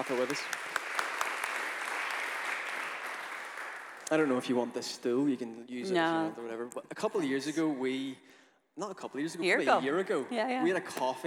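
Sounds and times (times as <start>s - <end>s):
speech: 0.0s - 0.8s, 4.1s - 11.2s
audience applause welcoming a speaker: 0.0s - 4.5s.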